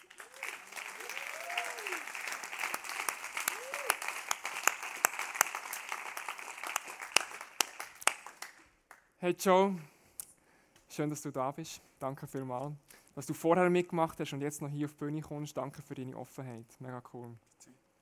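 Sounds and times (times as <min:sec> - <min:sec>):
crowd applauding: 0:00.0 - 0:09.0
speech: 0:09.2 - 0:09.9, 0:11.0 - 0:17.5.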